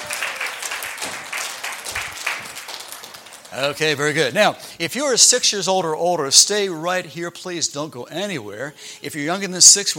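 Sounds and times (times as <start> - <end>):
audience applause: 0.0 - 4.0
speech: 3.5 - 9.9.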